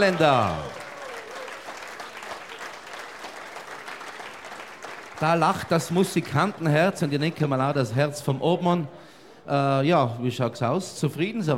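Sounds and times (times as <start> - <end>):
speech: 0.0 - 0.8, 5.2 - 11.5
audience applause: 0.0 - 8.9.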